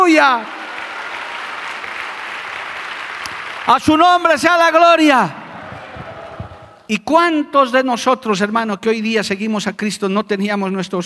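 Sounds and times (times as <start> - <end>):
audience applause: 0.0 - 6.9
speech: 0.1 - 0.6, 3.6 - 5.4, 6.9 - 11.0.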